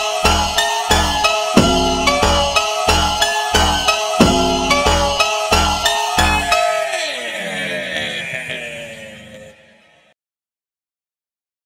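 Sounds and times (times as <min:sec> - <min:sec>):
slowed funk music: 0:00.0 - 0:06.6
laughter: 0:06.4 - 0:10.0.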